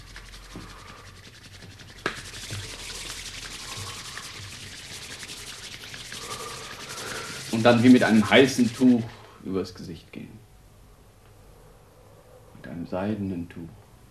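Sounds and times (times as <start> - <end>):
hands rubbing together vigorously to warm them: 0.0 - 9.3
speech: 7.6 - 10.4, 12.9 - 13.8.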